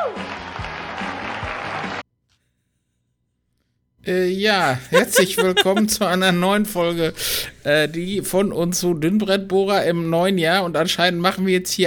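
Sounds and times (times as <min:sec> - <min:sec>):
studio audience applause: 0:00.0 - 0:02.0
speech: 0:04.0 - 0:11.8
laughter: 0:04.7 - 0:06.4.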